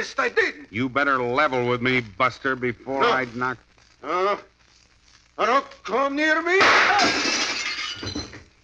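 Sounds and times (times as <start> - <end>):
speech: 0.0 - 4.5, 5.4 - 8.3
gunshot shattering window glass: 6.6 - 8.2.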